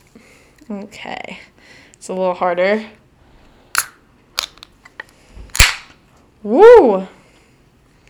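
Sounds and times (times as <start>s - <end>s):
speech: 0.7s - 3.0s, 6.4s - 7.2s
beer can cracking open with fizzing hiss: 3.7s - 5.9s.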